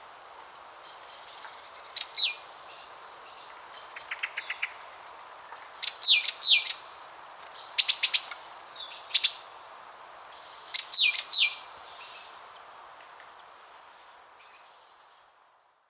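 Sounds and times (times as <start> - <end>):
great tit calls: 0.2 - 9.6, 10.2 - 12.5.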